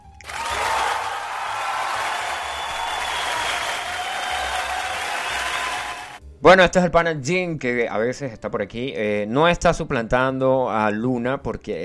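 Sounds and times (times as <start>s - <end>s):
recorded applause played back: 0.2s - 6.2s
speech: 6.4s - 11.8s.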